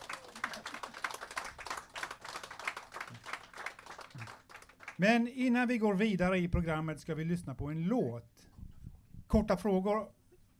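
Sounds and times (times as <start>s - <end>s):
audience applause welcoming guests: 0.0s - 5.0s
speech: 5.0s - 8.3s, 9.3s - 10.2s.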